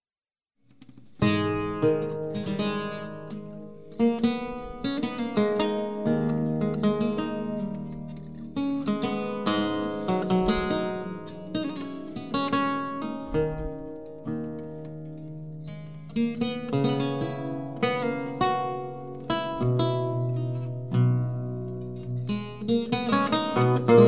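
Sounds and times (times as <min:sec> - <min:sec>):
prelude: 0:01.2 - 0:24.0.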